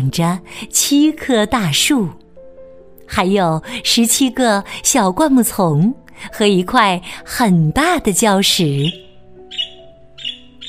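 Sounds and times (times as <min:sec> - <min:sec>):
speech: 0:00.0 - 0:02.2, 0:03.1 - 0:09.0
birds calling: 0:08.8 - 0:10.6.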